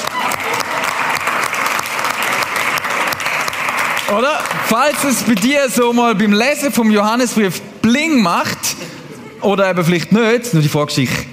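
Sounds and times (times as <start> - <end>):
audience applause: 0.0 - 5.7
speech: 4.1 - 11.3.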